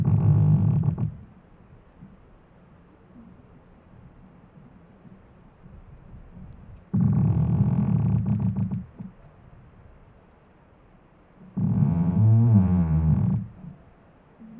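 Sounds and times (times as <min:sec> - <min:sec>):
tree creaking and squeaking: 0:00.0 - 0:01.3, 0:06.9 - 0:09.2, 0:11.4 - 0:13.8.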